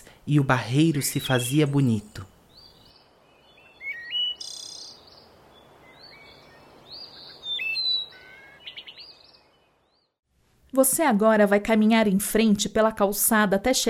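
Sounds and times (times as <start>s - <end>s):
speech: 0.2s - 2.3s, 10.8s - 13.8s
birds chirping at dawn: 0.6s - 10.2s.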